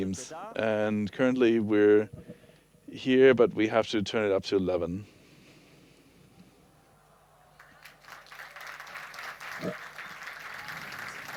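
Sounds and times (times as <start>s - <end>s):
speech: 0.0s - 2.3s, 2.9s - 5.1s
audience applause: 7.6s - 11.3s.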